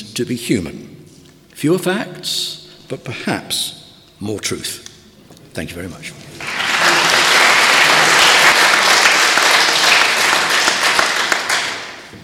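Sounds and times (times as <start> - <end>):
speech: 0.2 - 0.9, 1.6 - 4.8, 5.6 - 6.2
round of applause: 6.4 - 12.1.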